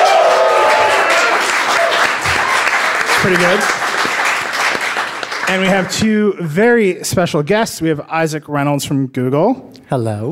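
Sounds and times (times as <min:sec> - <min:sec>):
scattered whoops: 0:00.0 - 0:02.6
live crowd clapping and cheering: 0:00.0 - 0:06.3
speech: 0:03.3 - 0:03.8, 0:05.5 - 0:10.3.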